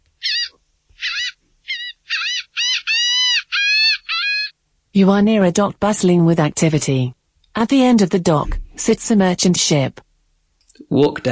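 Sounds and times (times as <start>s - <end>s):
seagulls calling by the sea: 0.2s - 4.6s
speech: 5.0s - 10.0s, 10.9s - 11.3s.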